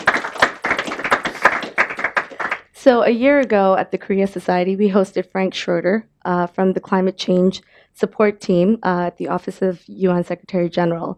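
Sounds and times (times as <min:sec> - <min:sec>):
audience applause for two expert guests: 0:00.0 - 0:03.6
speech: 0:02.8 - 0:11.1.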